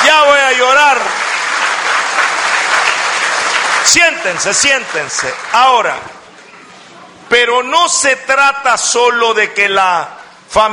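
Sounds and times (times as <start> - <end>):
crowd applause: 0.0 - 6.2
speech: 3.9 - 6.2, 7.3 - 10.7.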